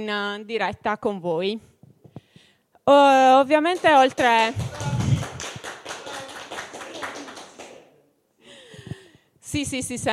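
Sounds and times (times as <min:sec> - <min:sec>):
speech: 0:00.0 - 0:01.7, 0:02.9 - 0:04.8, 0:09.5 - 0:10.1
audience applause: 0:03.8 - 0:07.9.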